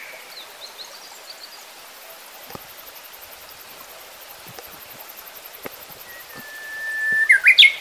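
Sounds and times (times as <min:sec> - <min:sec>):
uguisu and other birds: 0:06.1 - 0:07.8.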